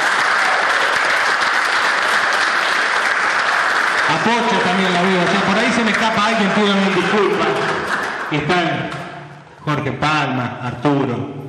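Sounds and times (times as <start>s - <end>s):
audience applause: 0.0s - 8.7s
speech: 4.1s - 11.4s.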